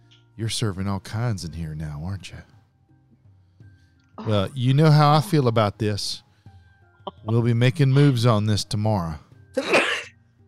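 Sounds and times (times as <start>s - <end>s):
speech: 0.4s - 2.6s, 4.2s - 6.2s, 7.2s - 9.7s
sneeze: 9.6s - 10.1s.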